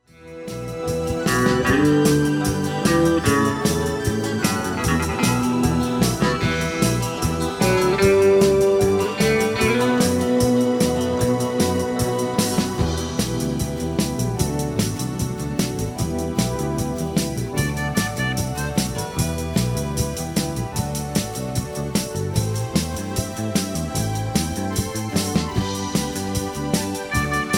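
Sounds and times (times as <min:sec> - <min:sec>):
strings strummed: 0:00.2 - 0:27.5.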